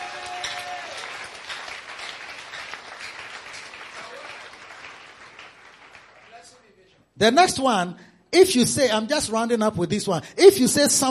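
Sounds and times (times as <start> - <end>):
audience clapping: 0.0 - 6.8
speech: 7.2 - 11.1.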